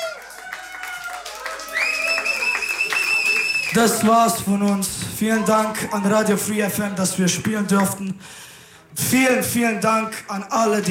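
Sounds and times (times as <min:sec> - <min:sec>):
audience applause: 0:00.0 - 0:05.8
speech: 0:03.7 - 0:10.9.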